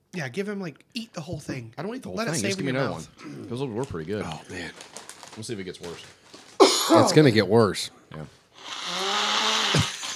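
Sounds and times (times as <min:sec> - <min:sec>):
speech: 0:00.2 - 0:06.2, 0:06.9 - 0:08.4
person blowing nose: 0:08.6 - 0:10.1.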